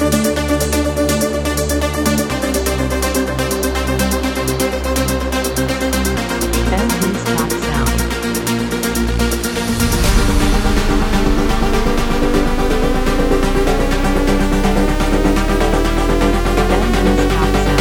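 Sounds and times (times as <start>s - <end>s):
pulse engine: 0.0s - 17.8s.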